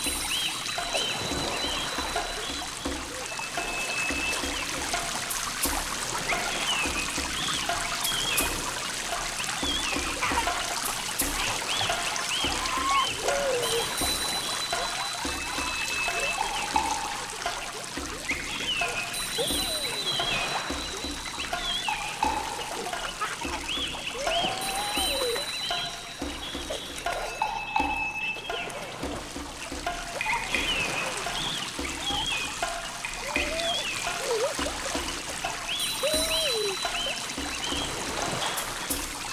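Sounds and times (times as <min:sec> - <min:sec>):
rain forest river flowing: 0:00.0 - 0:39.3
rain in a rain forest: 0:00.0 - 0:39.3
children's voices in a rain forest: 0:12.5 - 0:14.1, 0:22.7 - 0:25.6, 0:33.2 - 0:34.8, 0:36.0 - 0:37.0.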